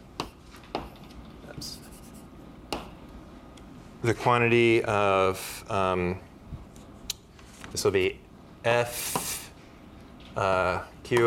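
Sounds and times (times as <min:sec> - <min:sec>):
pen strokes on paper sketching graphs of functions: 0:01.7 - 0:02.3
speech: 0:04.0 - 0:06.3, 0:07.8 - 0:09.3, 0:10.4 - 0:11.2.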